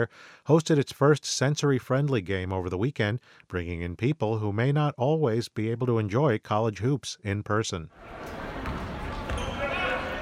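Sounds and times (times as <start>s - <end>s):
speech: 0.0s - 8.4s
basketball game crowd murmur: 8.0s - 10.2s
tennis shoes squealing on a basketball court: 8.0s - 10.2s.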